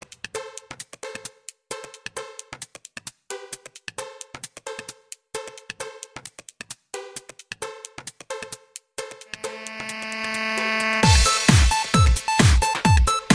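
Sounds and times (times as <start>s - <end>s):
rock music: 9.3s - 13.3s.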